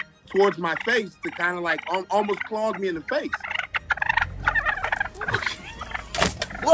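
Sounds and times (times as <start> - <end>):
wild turkey gobbling: 0.0 - 6.7
speech: 0.3 - 3.5.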